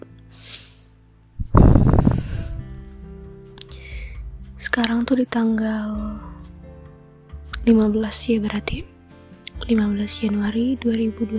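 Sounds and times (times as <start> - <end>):
deep breath: 1.6 - 2.8, 3.7 - 4.3
speech: 4.8 - 6.3, 7.7 - 8.9, 9.6 - 11.3.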